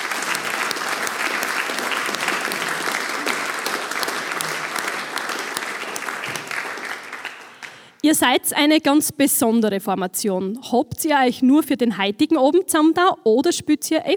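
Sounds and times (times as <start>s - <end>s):
audience applause: 0.0s - 7.8s
speech: 8.0s - 14.1s.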